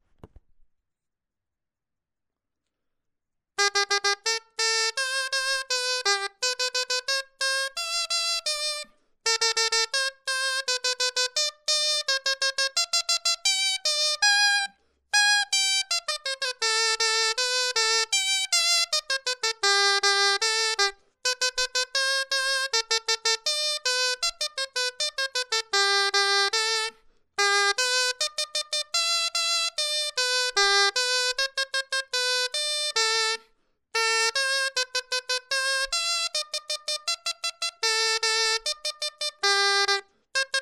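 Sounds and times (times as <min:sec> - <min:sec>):
clarinet etude: 0:03.6 - 0:40.5.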